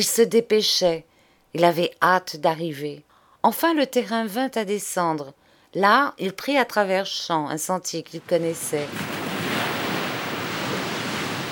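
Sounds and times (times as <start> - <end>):
speech: 0.0 - 9.2
sea waves breaking on the shore: 8.2 - 11.5.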